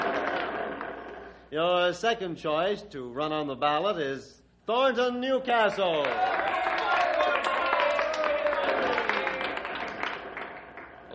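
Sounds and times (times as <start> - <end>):
audience applause: 0.0 - 1.2, 5.8 - 11.1
speech: 1.5 - 6.6.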